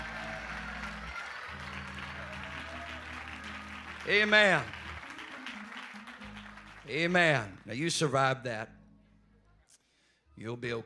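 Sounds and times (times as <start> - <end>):
audience clapping: 0.0 - 8.1
speech: 4.0 - 4.8, 6.9 - 8.8, 10.4 - 10.8.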